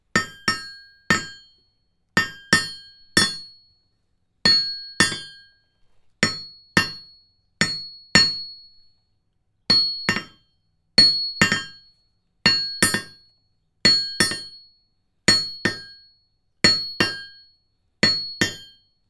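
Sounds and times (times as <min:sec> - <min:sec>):
working with hammer on anvil: 0:00.2 - 0:01.5, 0:02.2 - 0:03.5, 0:04.5 - 0:05.5, 0:06.2 - 0:07.0, 0:09.7 - 0:10.4, 0:11.4 - 0:11.8, 0:12.5 - 0:13.2, 0:13.9 - 0:14.6, 0:15.3 - 0:16.0, 0:16.7 - 0:17.4, 0:18.0 - 0:18.8.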